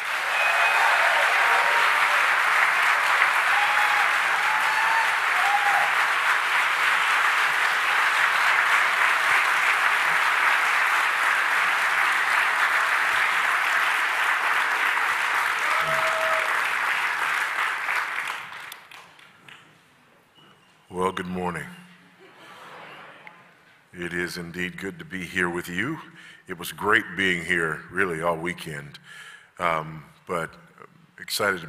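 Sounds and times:
audience applause at a church service welcoming Pastor Voddie Baucham: 0.0 - 19.4
speech: 24.3 - 30.6, 31.2 - 31.6.

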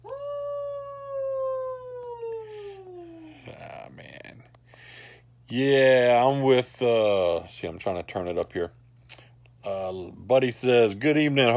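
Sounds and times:
person imitating a Sasquatch yell: 0.0 - 3.6
speech: 5.5 - 8.8, 10.3 - 11.5.

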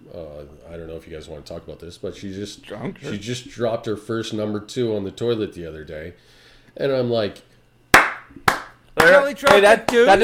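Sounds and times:
speech: 0.5 - 7.5, 9.0 - 10.2
hands clapping in celebration: 8.0 - 10.2.

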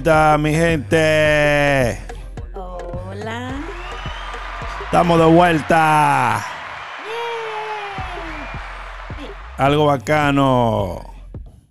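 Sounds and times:
speech: 0.0 - 2.1, 4.9 - 6.5, 9.6 - 11.1
applause sound effect from button: 3.5 - 11.0.

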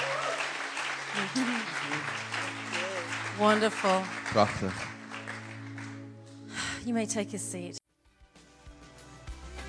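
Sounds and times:
audience applause: 0.0 - 6.2
speech: 1.2 - 2.2, 3.4 - 4.9, 6.8 - 7.8.

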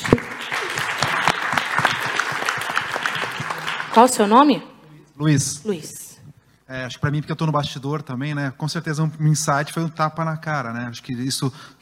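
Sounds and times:
audience applause: 0.0 - 4.5
speech: 4.0 - 6.0, 6.7 - 11.8.

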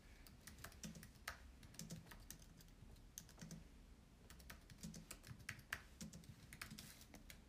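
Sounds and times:
typing on a computer keyboard: 0.2 - 3.7, 4.3 - 7.4.

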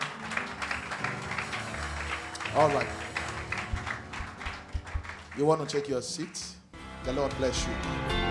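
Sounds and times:
audience applause: 0.0 - 6.6
speech: 2.6 - 3.0, 5.4 - 8.2.

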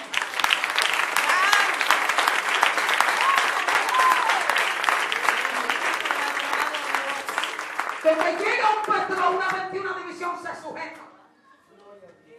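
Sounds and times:
audience applause: 0.0 - 9.7
speech: 8.1 - 11.1.

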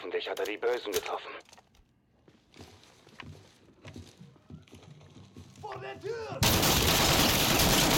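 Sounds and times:
speech: 0.2 - 1.5, 5.7 - 7.1
video game gunfire: 6.4 - 7.9.

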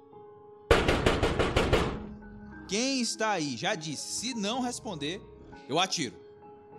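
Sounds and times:
heavy knocking on a bedroom window: 0.7 - 2.1
speech: 2.7 - 6.2.

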